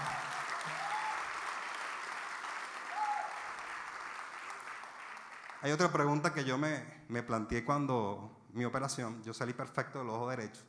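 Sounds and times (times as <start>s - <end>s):
audience applause: 0.0s - 5.8s
speech: 5.6s - 10.6s.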